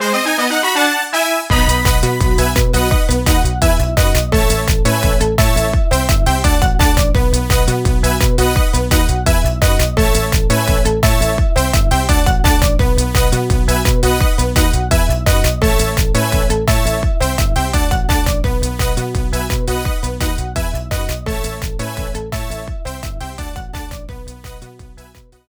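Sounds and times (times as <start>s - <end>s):
home run background music: 0.0s - 25.4s.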